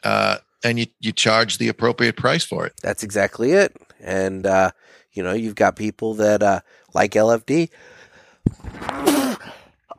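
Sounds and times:
speech: 0.0s - 9.2s
sneeze: 8.8s - 9.4s.

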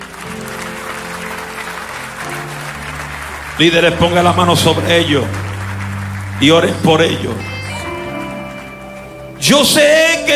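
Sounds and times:
church congregation applauding: 0.0s - 10.3s
sustained low instrumental tones: 0.0s - 10.3s
speech: 3.6s - 5.4s, 6.4s - 7.5s, 9.4s - 10.3s.

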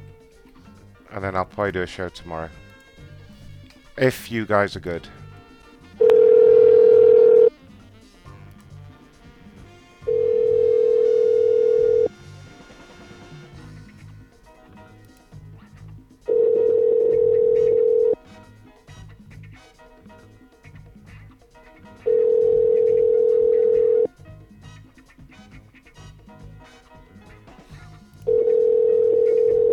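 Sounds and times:
speech: 1.1s - 2.6s, 4.0s - 5.2s
telephone ringback tone on a call: 6.0s - 7.6s, 10.0s - 12.1s, 16.3s - 18.2s, 22.1s - 24.1s, 28.3s - 29.7s.

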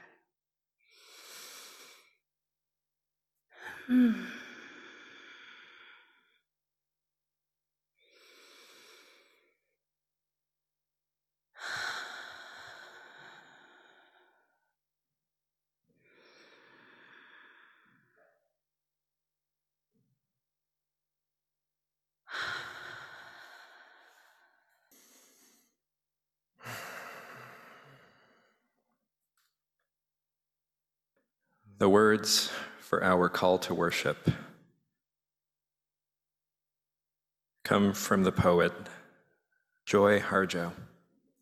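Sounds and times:
slow intentional breathing at a worship gathering: 3.6s - 6.5s, 8.1s - 9.8s, 11.6s - 14.7s, 16.0s - 18.5s, 22.3s - 25.9s, 26.6s - 29.0s
speech: 3.9s - 4.4s, 31.8s - 34.4s, 37.7s - 39.0s, 39.9s - 40.9s.

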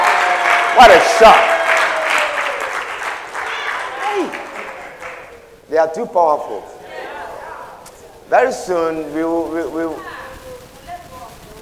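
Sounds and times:
audience clapping for instrumentalists: 0.0s - 6.7s
speech: 0.8s - 1.5s, 5.7s - 6.7s, 8.3s - 10.1s.

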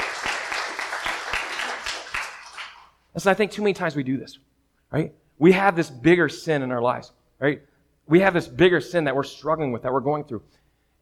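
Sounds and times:
audience applause: 0.0s - 2.9s
speech: 3.2s - 11.0s.

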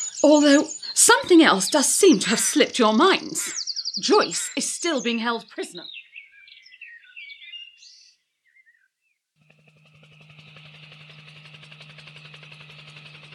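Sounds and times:
helicopter: 0.0s - 3.6s, 9.4s - 13.3s
speech: 0.2s - 6.0s.

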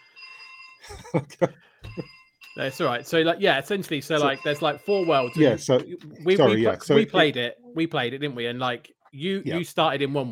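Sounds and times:
phone ringing: 0.0s - 0.9s, 1.8s - 6.8s
laughter: 0.8s - 2.1s
speech: 1.1s - 10.3s.

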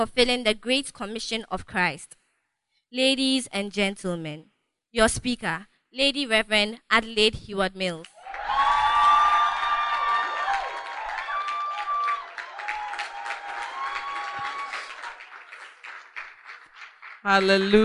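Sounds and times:
speech: 0.0s - 2.2s, 2.9s - 8.1s, 17.2s - 17.8s
audience applause and cheering: 8.2s - 17.8s.

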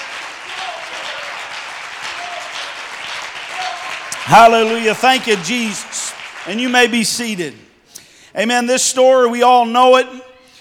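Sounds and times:
audience applauding and clapping: 0.0s - 7.4s
speech: 4.3s - 7.7s, 8.4s - 10.3s.

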